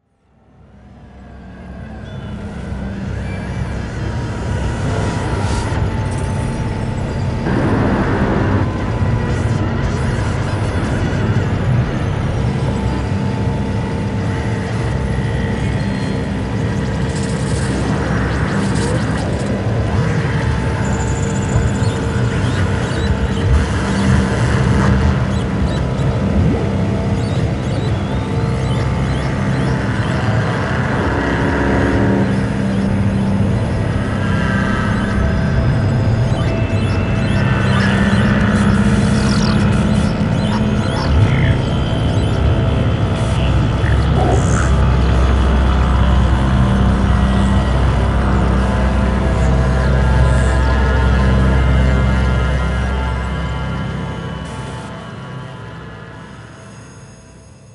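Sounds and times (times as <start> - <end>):
lofi music with phasing: 1.6 - 56.5.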